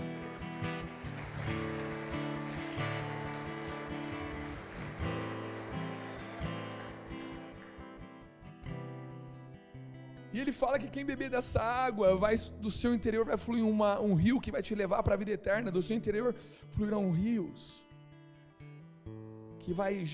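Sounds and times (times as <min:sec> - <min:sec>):
audience applauding: 0:00.0 - 0:08.2
speech: 0:10.4 - 0:17.8, 0:19.7 - 0:20.1.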